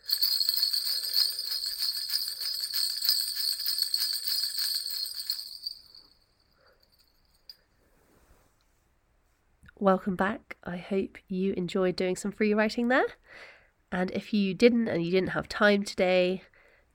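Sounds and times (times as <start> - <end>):
bells ringing: 0.0 - 7.6
speech: 9.8 - 16.9.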